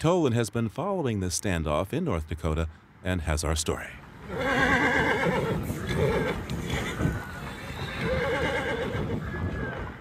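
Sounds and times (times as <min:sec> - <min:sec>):
speech: 0:00.0 - 0:06.2
noisy background: 0:00.0 - 0:09.9
horse neighing: 0:04.3 - 0:09.2.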